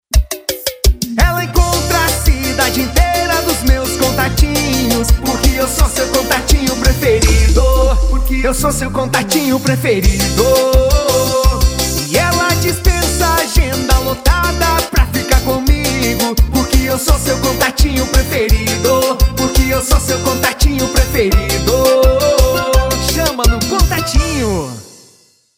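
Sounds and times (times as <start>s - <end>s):
parody jingle: 1.3s - 25.4s.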